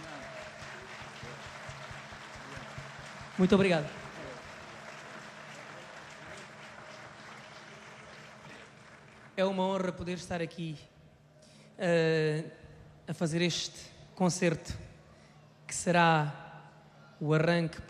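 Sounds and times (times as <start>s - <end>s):
audience applause: 0.0s - 9.4s
speech: 3.4s - 4.0s, 9.4s - 10.9s, 11.8s - 14.9s, 15.8s - 16.4s, 17.2s - 17.8s.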